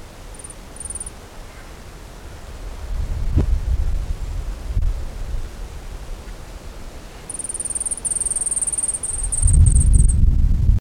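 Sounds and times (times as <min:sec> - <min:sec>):
gilded sapphire ticking calls: 0:00.3 - 0:01.2, 0:07.3 - 0:10.2
low rumbling noise: 0:01.6 - 0:07.3, 0:09.1 - 0:10.7.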